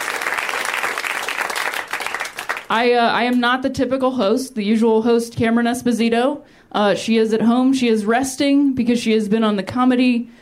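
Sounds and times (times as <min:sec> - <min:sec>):
audience clapping: 0:00.0 - 0:02.8
speech: 0:02.7 - 0:10.4.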